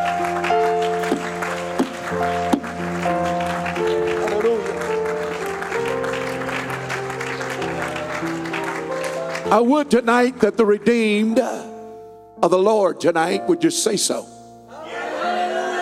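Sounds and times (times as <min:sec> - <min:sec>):
audience applause: 0:00.0 - 0:09.7
sustained organ chords: 0:00.0 - 0:15.7
speech: 0:09.5 - 0:11.6, 0:12.4 - 0:14.4.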